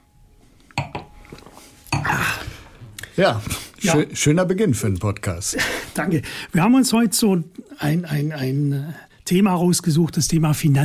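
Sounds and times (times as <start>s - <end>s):
wine glasses clinking in a toast: 0.7s - 2.3s
speech: 3.2s - 10.8s.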